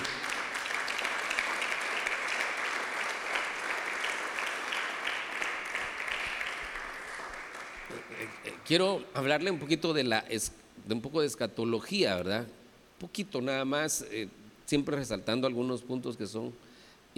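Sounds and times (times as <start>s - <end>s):
audience applause: 0.0s - 8.7s
speech: 8.7s - 17.1s.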